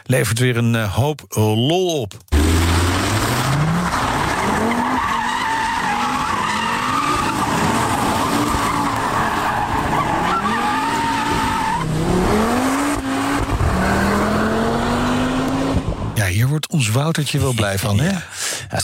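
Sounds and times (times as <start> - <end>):
speech: 0.1 - 2.3, 16.7 - 18.8
Audi RS3 five-cylinder engine: 2.3 - 16.2
Audi RS3 tires squealing: 2.4 - 15.4.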